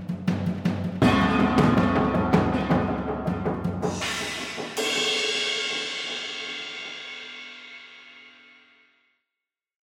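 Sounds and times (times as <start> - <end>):
drum flourish: 0.0 - 7.8.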